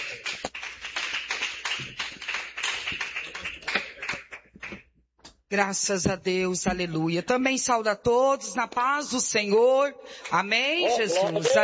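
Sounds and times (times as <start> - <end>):
crowd applauding: 0.0 - 4.8
speech: 5.5 - 11.6.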